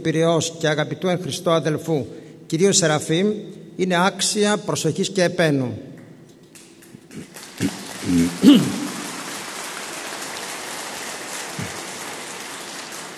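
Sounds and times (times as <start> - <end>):
speech: 0.0 - 5.9, 7.2 - 8.8
audience applause: 7.0 - 13.1.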